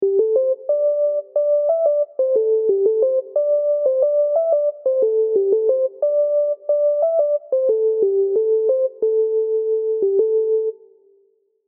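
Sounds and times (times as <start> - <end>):
soul MIDI melody in A minor at 80 bpm: 0.0 - 10.9.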